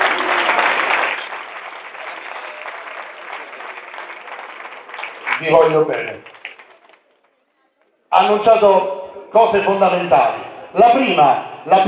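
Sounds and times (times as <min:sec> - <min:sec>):
audience applause: 0:00.0 - 0:07.3
speech: 0:05.4 - 0:06.3, 0:08.2 - 0:11.8.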